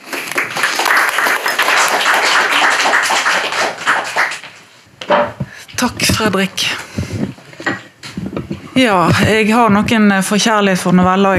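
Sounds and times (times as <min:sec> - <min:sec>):
audience applause: 0:00.0 - 0:04.7
speech: 0:05.8 - 0:06.8, 0:08.8 - 0:11.3.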